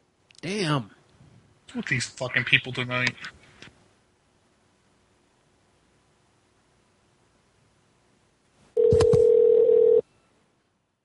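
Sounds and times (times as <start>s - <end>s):
speech: 0.4s - 1.0s, 1.7s - 3.4s
phone line clicks: 8.8s - 10.0s
phone line ringback tone: 8.8s - 10.0s.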